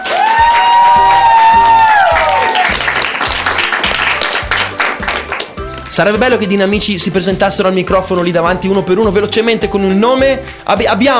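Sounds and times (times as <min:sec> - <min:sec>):
audience applause: 0:00.0 - 0:05.6
speech: 0:06.0 - 0:11.1.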